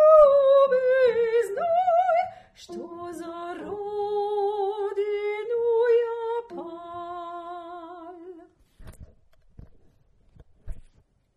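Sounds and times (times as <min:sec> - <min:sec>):
tenor singing: 0:00.0 - 0:08.5.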